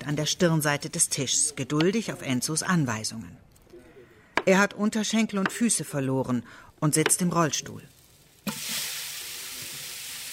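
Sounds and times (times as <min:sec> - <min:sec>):
speech: 0:00.1 - 0:03.5, 0:04.4 - 0:08.7
meat frying in sunflower oil in a pot: 0:07.9 - 0:10.3.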